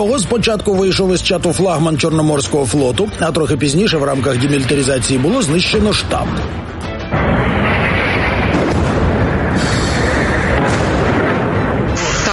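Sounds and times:
speech: 0:00.0 - 0:06.8
explosions: 0:06.2 - 0:12.3.

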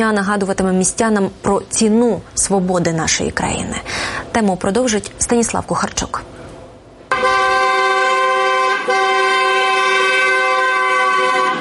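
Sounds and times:
speech: 0:00.0 - 0:06.3
car horns honking: 0:07.1 - 0:11.5.

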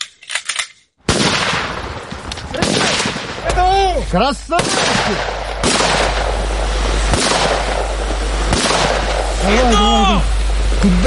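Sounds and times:
live-round gunfire during assault training: 0:01.1 - 0:03.5, 0:04.5 - 0:09.7
speech: 0:04.0 - 0:05.8, 0:09.4 - 0:11.0.

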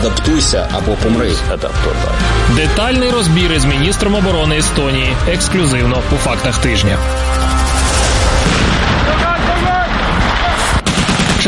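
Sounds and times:
speech: 0:00.0 - 0:07.8
explosions: 0:07.5 - 0:11.4
gunshots: 0:07.8 - 0:11.4.

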